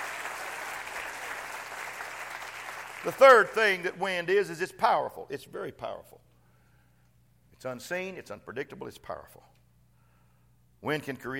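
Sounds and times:
audience clapping hands: 0.0 - 4.0
speech: 3.0 - 6.3, 7.6 - 9.6, 10.8 - 11.3.

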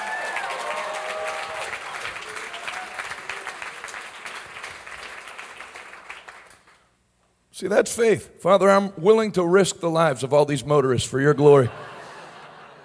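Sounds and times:
audience hand clapping: 0.3 - 6.9
speech: 7.6 - 11.8
laughter: 11.6 - 12.8.

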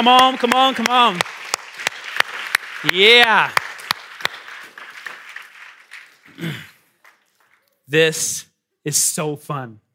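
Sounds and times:
speech: 0.0 - 1.4, 2.8 - 3.6, 6.4 - 6.7, 7.9 - 9.8
audience applause: 0.0 - 7.6.

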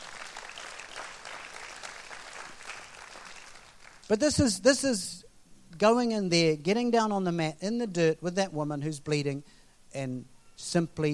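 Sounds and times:
audience clapping: 0.0 - 4.1
speech: 4.1 - 5.2, 5.8 - 11.1.

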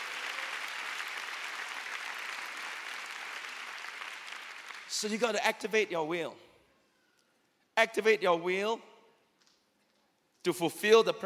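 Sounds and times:
audience clapping: 0.0 - 5.2
speech: 4.9 - 6.5, 7.8 - 8.9, 10.4 - 11.2.

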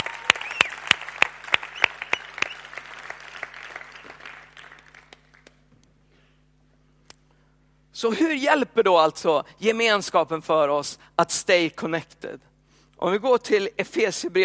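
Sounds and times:
audience applause: 0.0 - 5.6
speech: 8.0 - 14.4.

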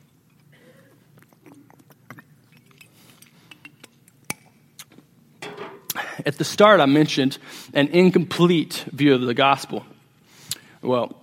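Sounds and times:
speaker drinking water: 0.4 - 4.2
speech: 6.2 - 9.9, 10.8 - 11.2.

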